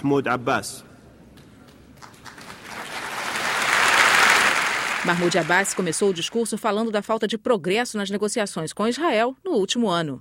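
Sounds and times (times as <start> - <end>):
speech: 0.0 - 0.9, 5.0 - 10.2
standing ovation applause in assembly: 1.7 - 6.4.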